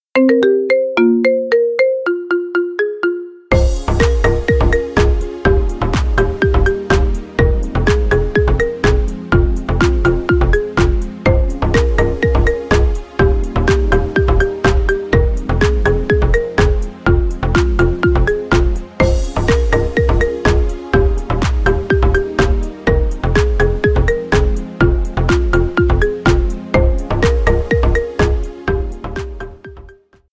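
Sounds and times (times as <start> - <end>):
marimba remix: 0.1 - 30.1.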